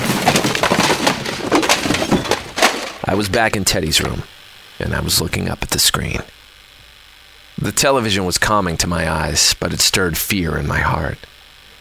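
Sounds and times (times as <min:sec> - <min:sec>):
tower of cassettes collapsing with hard plastic knocks and rattles: 0:00.0 - 0:03.0
speech: 0:03.1 - 0:06.4, 0:07.6 - 0:11.3.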